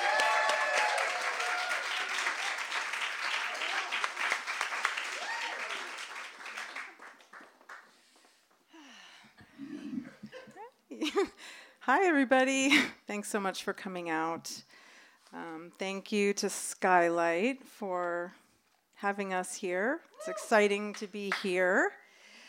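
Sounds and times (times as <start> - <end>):
audience clapping and cheering to welcome a performer: 0.0 - 8.7
speech: 11.2 - 14.7, 15.3 - 18.4, 19.0 - 22.0.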